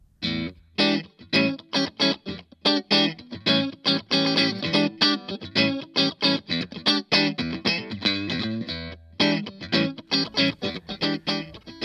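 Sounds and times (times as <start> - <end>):
Fender Stratocaster electric guitar playing: 0.2 - 11.8.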